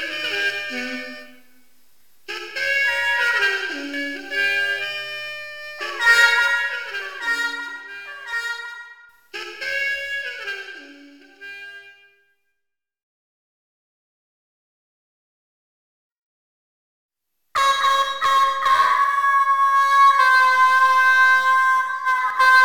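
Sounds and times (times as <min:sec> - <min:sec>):
trumpet: 0:00.0 - 0:12.2, 0:17.6 - 0:22.6
siren alone: 0:17.8 - 0:22.6.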